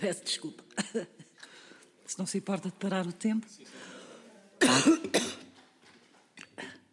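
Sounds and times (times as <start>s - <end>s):
speech: 0.0s - 1.2s, 2.1s - 4.0s, 4.6s - 5.4s
person coughing from dust in the throat: 4.6s - 5.5s.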